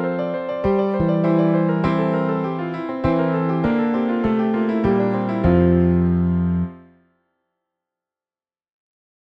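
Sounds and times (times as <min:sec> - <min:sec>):
piano exercise: 0:00.0 - 0:07.1.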